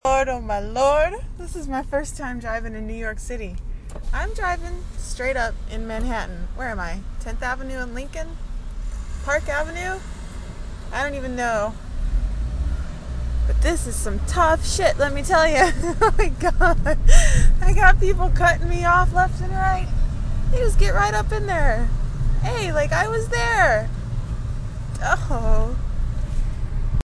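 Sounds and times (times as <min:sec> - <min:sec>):
car driving in New York City: 0:00.0 - 0:27.0.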